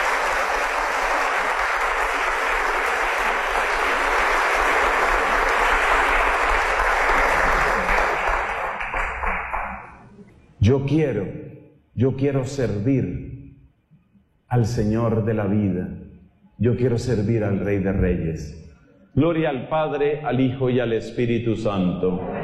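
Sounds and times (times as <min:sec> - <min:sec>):
crowd applauding: 0:00.0 - 0:10.1
speech: 0:10.7 - 0:11.4, 0:12.0 - 0:13.3, 0:14.5 - 0:16.0, 0:16.6 - 0:22.4.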